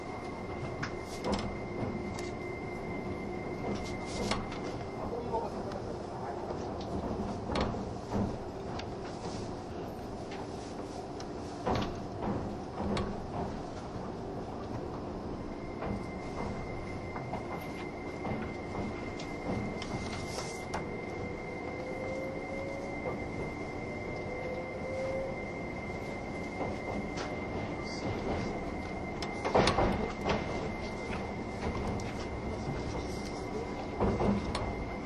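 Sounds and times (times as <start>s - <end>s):
thin high whine: 0.0s - 6.4s, 15.3s - 35.0s
Spacia X limited express train running, heard inside: 0.0s - 35.0s.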